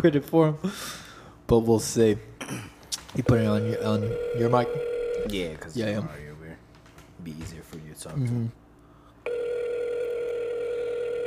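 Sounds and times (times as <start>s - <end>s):
speech: 0.0s - 6.2s, 7.2s - 8.6s
incoming phone call ringing with electronic tone: 3.2s - 5.6s, 9.2s - 11.2s.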